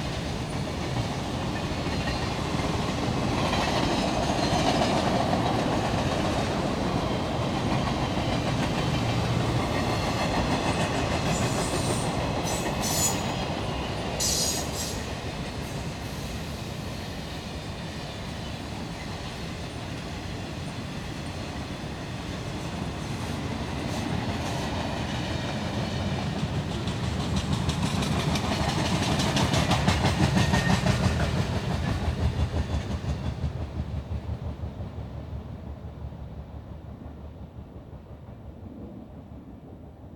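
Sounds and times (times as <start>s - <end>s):
freight train: 0.0s - 40.1s.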